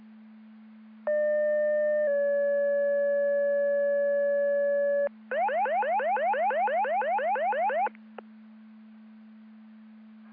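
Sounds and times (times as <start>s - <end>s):
siren: 1.1s - 7.9s.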